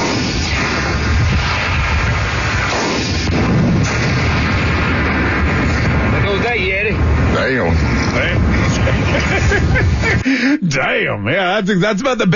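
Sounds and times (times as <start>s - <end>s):
rifle shot: 0.0s - 6.2s
explosion of cooler: 0.0s - 10.2s
laughter: 7.9s - 10.7s
speech: 10.7s - 12.3s.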